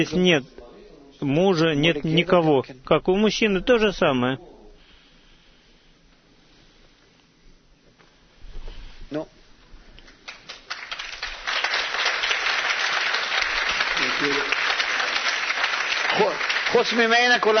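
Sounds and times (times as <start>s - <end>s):
speech: 0.0s - 0.6s, 1.2s - 4.5s, 9.1s - 9.4s, 16.7s - 17.5s
audience applauding: 10.1s - 17.5s.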